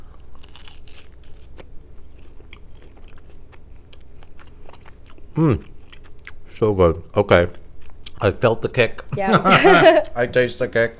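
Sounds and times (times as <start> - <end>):
crunching and chewing lumpia dipped in garlic chili vinegar: 0.0 - 8.4
person humming: 5.4 - 5.6
speech: 5.4 - 5.7, 6.6 - 7.6, 8.2 - 10.9
laughter: 9.2 - 10.1.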